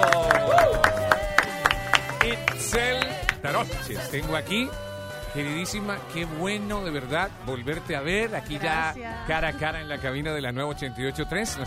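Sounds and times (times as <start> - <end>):
small audience clapping: 0.0 - 3.4
speech: 2.8 - 11.6.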